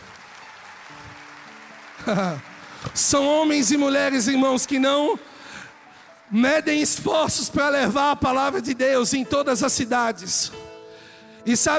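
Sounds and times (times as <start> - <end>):
audience applause: 0.0 - 7.1
laughter: 2.0 - 2.6
speech: 2.0 - 5.3, 6.3 - 10.7, 11.4 - 11.7.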